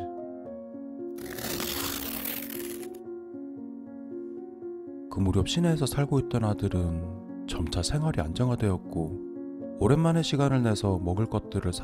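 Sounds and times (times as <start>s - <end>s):
wallpaper tearing: 1.2s - 3.0s
speech: 5.2s - 11.8s.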